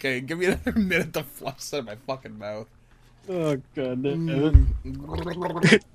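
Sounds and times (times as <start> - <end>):
speech: 0.0 - 5.9
person gagging after tasting something foul: 4.4 - 5.8.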